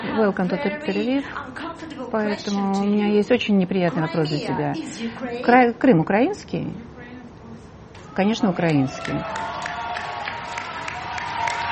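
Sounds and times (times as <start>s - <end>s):
speech: 0.2s - 6.9s, 8.2s - 9.5s
faint cheering: 8.0s - 11.7s
audience applause: 8.6s - 11.7s.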